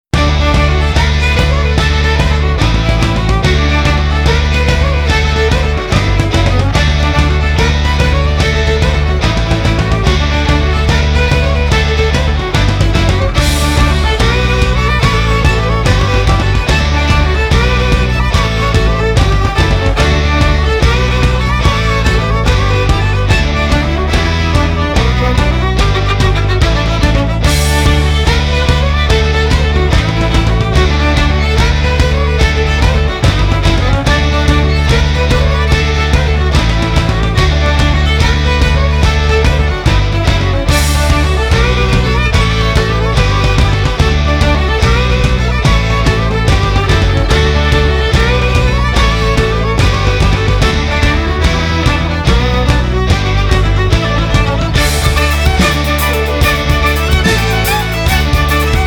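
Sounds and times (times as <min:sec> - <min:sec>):
jig tune: 0:00.1 - 0:58.8.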